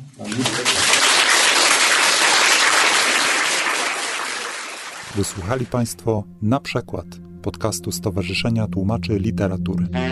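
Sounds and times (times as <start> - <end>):
applause for the guests: 0.0 - 5.7
speech: 0.2 - 0.9, 5.2 - 10.1.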